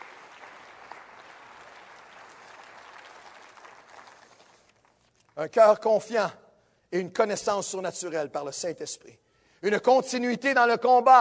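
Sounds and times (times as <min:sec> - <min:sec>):
audience applause: 0:00.0 - 0:05.0
speech: 0:05.4 - 0:11.1.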